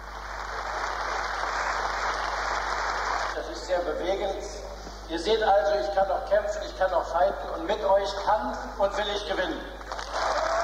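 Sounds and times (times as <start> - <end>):
party congress cheering: 0.0 - 3.4, 9.9 - 10.6
stormy applause from party congress: 0.0 - 3.4, 9.9 - 10.6
speech: 3.7 - 9.8.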